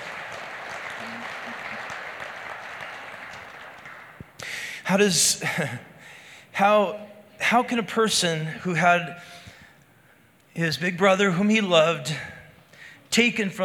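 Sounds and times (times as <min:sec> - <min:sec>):
audience applause: 0:00.0 - 0:04.3
man speaking loudly: 0:04.8 - 0:05.9, 0:06.5 - 0:09.2, 0:10.5 - 0:12.5, 0:13.1 - 0:13.6
speech: 0:04.9 - 0:05.9, 0:06.6 - 0:09.4, 0:10.6 - 0:12.3, 0:13.1 - 0:13.6.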